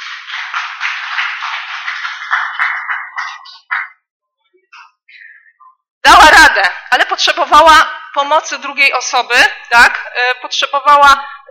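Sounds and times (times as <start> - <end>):
applause: 0.0 - 4.0
speech: 7.2 - 11.5.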